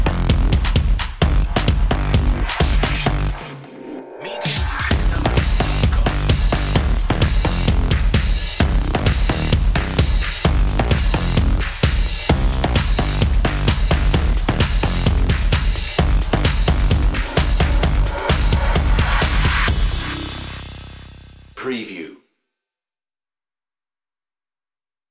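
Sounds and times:
hip hop drums and bass: 0.0 - 3.6, 4.3 - 21.4.

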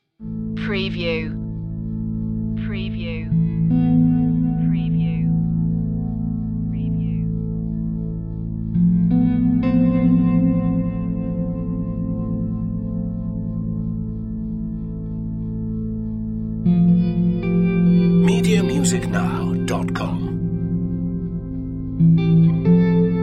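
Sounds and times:
thoughtful dreamscape ambient music: 0.2 - 23.2.

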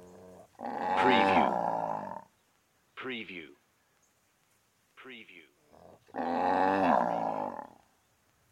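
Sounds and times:
cow mooing: 0.6 - 2.2, 6.1 - 7.7.

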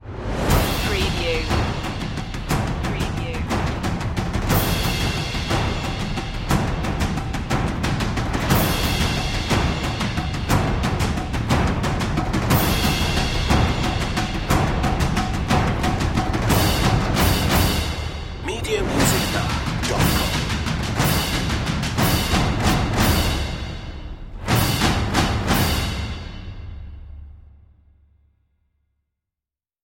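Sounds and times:
percussion: 0.0 - 28.0.

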